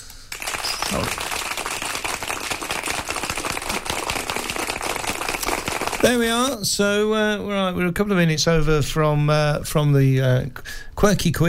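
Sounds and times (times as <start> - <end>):
round of applause: 0.3 - 6.5
speech: 6.0 - 11.4.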